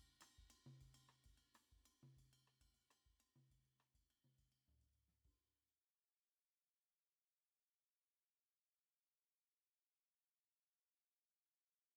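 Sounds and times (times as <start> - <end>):
ride cymbal: 0.0 - 3.6.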